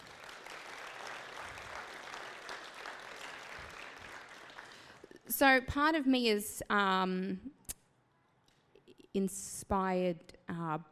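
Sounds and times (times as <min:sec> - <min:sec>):
audience applause: 0:00.0 - 0:05.0
speech: 0:05.4 - 0:07.6, 0:09.2 - 0:10.8.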